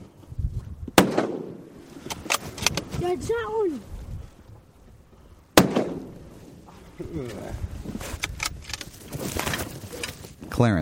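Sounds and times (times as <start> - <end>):
rifle shot: 1.0 - 2.8, 5.6 - 6.3
speech: 3.1 - 3.9, 7.1 - 8.2, 10.6 - 10.8.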